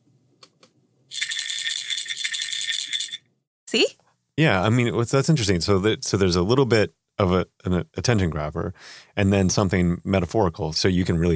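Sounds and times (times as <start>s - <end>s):
pill bottle rattling as medication alarm tone: 1.1s - 3.2s
speech: 3.7s - 11.3s.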